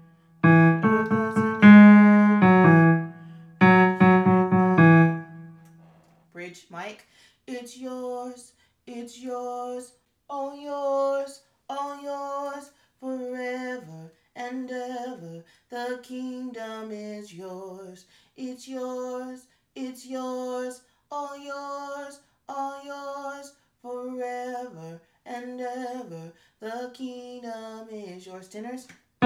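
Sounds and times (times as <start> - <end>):
piano breakdown: 0.0 - 5.7.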